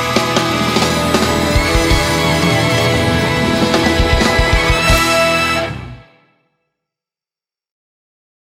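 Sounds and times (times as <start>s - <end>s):
musical accompaniment: 0.0s - 6.4s.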